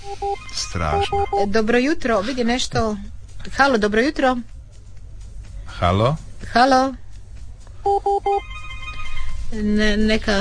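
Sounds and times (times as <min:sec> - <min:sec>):
telephone ringing with electronic two-pitch beeps: 0:00.0 - 0:01.5, 0:07.9 - 0:09.4
speech: 0:00.0 - 0:04.5, 0:05.8 - 0:07.0, 0:07.8 - 0:08.6, 0:09.5 - 0:10.3
low hum: 0:00.0 - 0:10.3.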